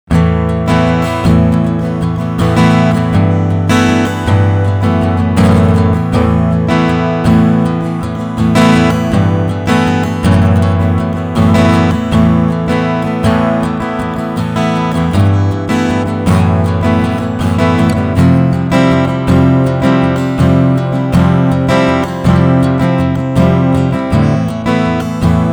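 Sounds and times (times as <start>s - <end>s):
strummed instrument: 0.1s - 25.5s.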